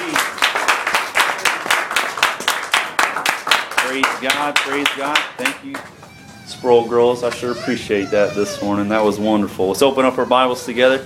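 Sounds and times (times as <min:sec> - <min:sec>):
church congregation rhythmic hand clapping in praise: 0:00.0 - 0:06.1
speech: 0:03.9 - 0:11.0.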